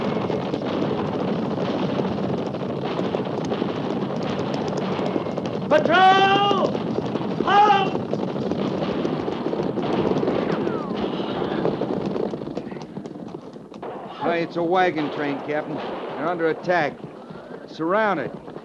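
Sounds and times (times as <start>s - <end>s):
horses galloping: 0.0s - 18.6s
speech: 5.7s - 6.5s, 14.4s - 17.0s, 17.8s - 18.5s
people shouting and whooping: 5.7s - 6.7s, 7.4s - 8.0s.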